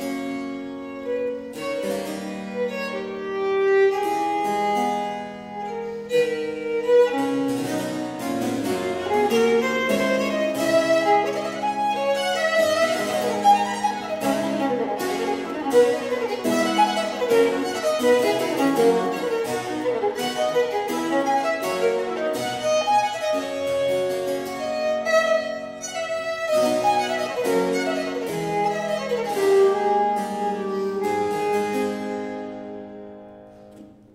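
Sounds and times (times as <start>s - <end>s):
violin sonata played with double stops: 0.0s - 34.1s.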